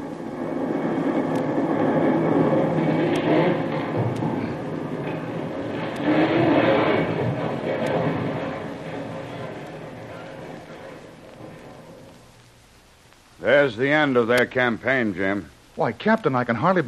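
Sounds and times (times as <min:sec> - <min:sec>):
tremendous explosion with reverberations: 0:00.0 - 0:12.4
faint sharp crackles: 0:00.0 - 0:16.8
speech: 0:13.6 - 0:16.8.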